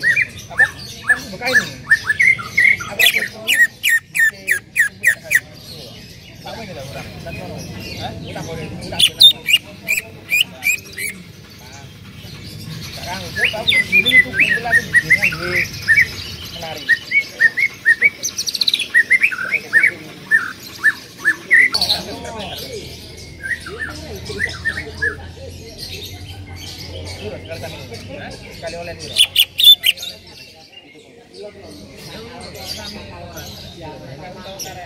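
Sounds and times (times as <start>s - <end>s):
birds chirping: 0.0s - 34.8s.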